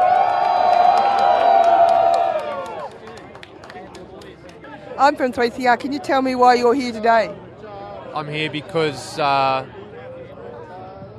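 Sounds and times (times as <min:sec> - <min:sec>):
whoops: 0:00.0 - 0:02.9
rally crowd cheering and shouting: 0:00.0 - 0:03.0
speech: 0:05.0 - 0:07.4, 0:08.2 - 0:09.8.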